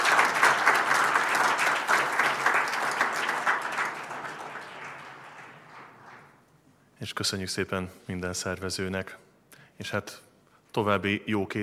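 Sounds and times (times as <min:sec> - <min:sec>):
audience applause: 0:00.0 - 0:06.5
speech: 0:07.0 - 0:11.6.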